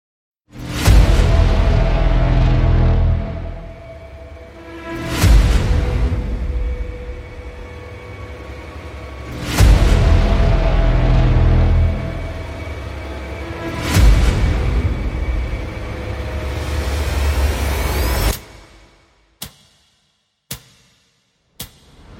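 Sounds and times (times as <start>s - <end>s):
epic instrumental music: 0.5s - 22.1s.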